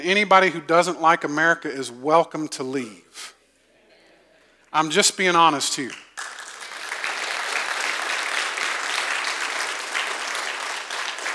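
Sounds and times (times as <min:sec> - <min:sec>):
speech: 0:00.0 - 0:03.4, 0:04.7 - 0:06.0
audience applause: 0:06.2 - 0:11.3.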